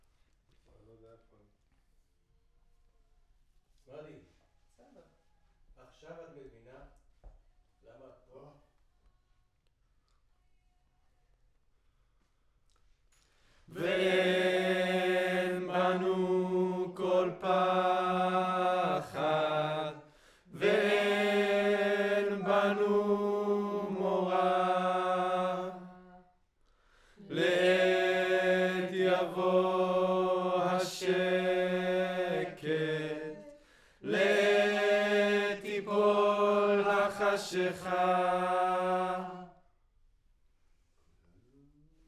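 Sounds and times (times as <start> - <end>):
choir singing: 13.7 - 26.3, 27.2 - 39.6.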